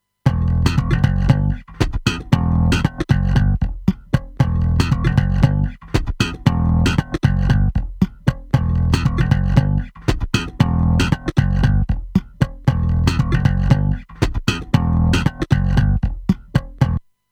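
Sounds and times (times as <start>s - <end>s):
bass: 0.3s - 17.1s.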